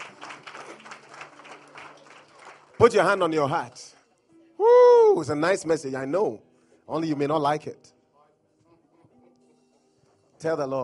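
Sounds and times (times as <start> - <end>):
church congregation clapping for the Lord Jesus: 0.0 - 4.1
speech: 2.8 - 4.0, 5.1 - 8.0, 10.4 - 10.8.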